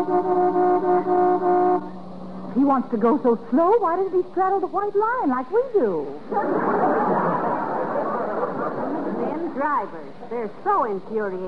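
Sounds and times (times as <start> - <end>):
big truck horn blaring on the road: 0.0 - 2.1
speech: 2.6 - 7.2, 9.4 - 11.4
laughter: 6.2 - 10.4.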